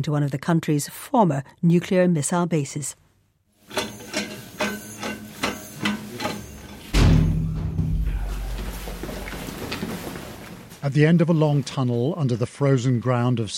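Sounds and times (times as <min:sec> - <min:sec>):
speech: 0:00.0 - 0:03.0, 0:10.8 - 0:13.5
heavy one-ton bunker door ratcheting metallic clanks: 0:03.6 - 0:10.0.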